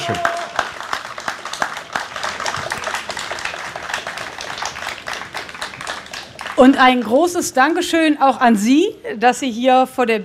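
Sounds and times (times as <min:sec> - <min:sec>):
speech: 0:00.0 - 0:00.4, 0:06.6 - 0:10.2
audience applause in Hannover: 0:00.0 - 0:07.0.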